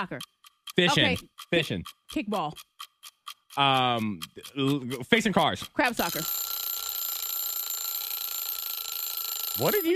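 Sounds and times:
speech: 0.0 - 6.4, 9.6 - 9.9
game buzzer sounding: 6.0 - 9.9.

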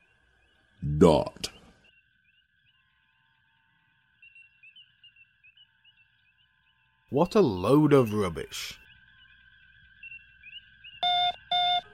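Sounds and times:
speech: 0.8 - 1.5, 7.1 - 8.8
faint electronic radio signal beeps: 11.0 - 11.9.

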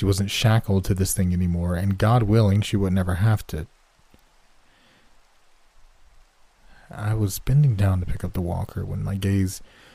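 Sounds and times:
speech: 0.0 - 3.8, 6.9 - 9.8
steady rain hissing: 0.0 - 9.9.

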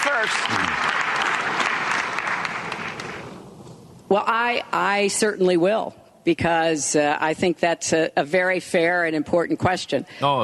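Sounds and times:
audience applause: 0.0 - 3.2
speech: 0.2 - 0.9, 4.1 - 10.4.

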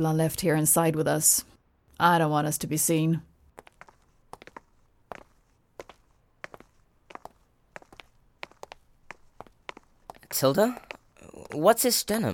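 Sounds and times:
speech: 0.0 - 3.3, 10.4 - 10.9, 11.5 - 12.3
faint footsteps of people walking: 3.5 - 12.1.

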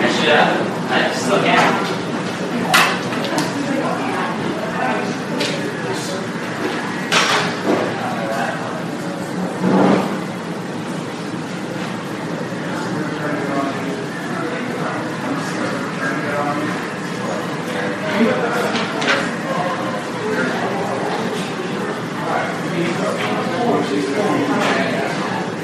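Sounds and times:
murmur of voices in a hospital emergency room: 0.0 - 25.6.

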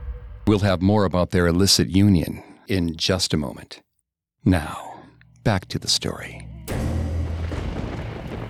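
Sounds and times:
speech: 0.5 - 3.8, 4.4 - 4.9, 5.4 - 6.5
thunderstorm: 7.2 - 8.4.

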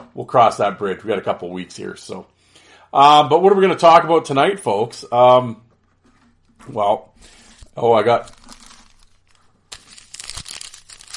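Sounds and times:
speech: 0.2 - 5.6, 6.6 - 8.4
1991-92 Upper Deck hockey card pack wrapper crinkling and tearing: 7.6 - 11.1.

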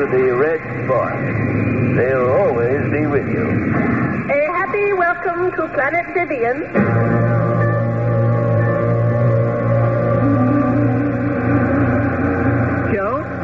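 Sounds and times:
speech: 0.0 - 4.0, 5.0 - 7.4
brief warbling whine: 0.0 - 13.4
large transport craft engines droning while landing: 0.0 - 13.4.

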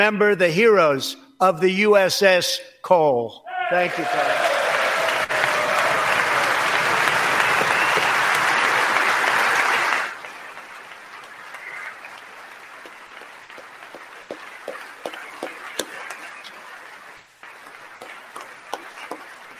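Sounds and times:
speech: 0.0 - 4.6
clapping: 3.9 - 19.5.

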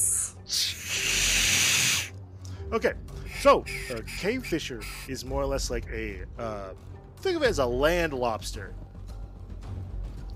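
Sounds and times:
person hissing through teeth imitating a snake: 0.0 - 2.1
speech: 2.7 - 8.9.

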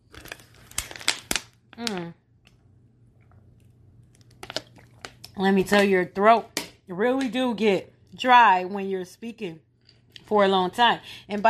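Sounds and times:
plastic water bottle crinkling: 0.0 - 2.1, 4.2 - 5.3
speech: 5.4 - 9.7, 10.3 - 11.4.

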